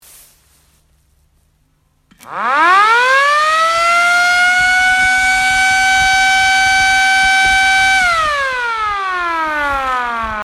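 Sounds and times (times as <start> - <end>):
siren wailing: 2.2 - 10.4.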